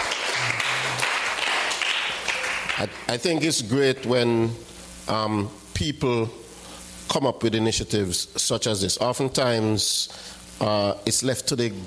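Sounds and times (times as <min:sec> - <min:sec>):
audience applause: 0:00.0 - 0:03.1
speech: 0:02.8 - 0:06.4, 0:07.1 - 0:11.8.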